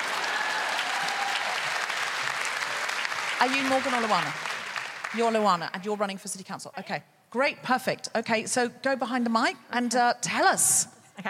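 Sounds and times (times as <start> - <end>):
audience applause: 0.0 - 5.7
speech: 3.4 - 4.5, 5.1 - 11.2.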